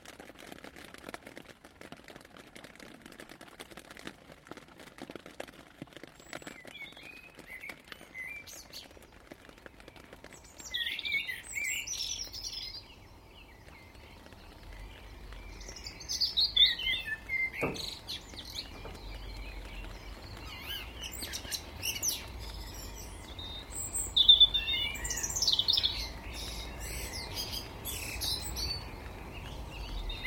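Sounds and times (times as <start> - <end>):
rain showers: 0.0 - 30.2
dawn chorus bird song: 6.2 - 30.2.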